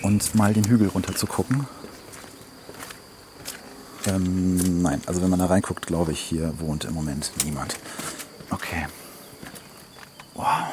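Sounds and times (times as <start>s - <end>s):
insects chirring: 0.0s - 10.7s
speech: 0.1s - 2.0s, 4.0s - 9.0s
footsteps walking down outdoor stairs: 0.4s - 4.7s, 9.4s - 10.2s.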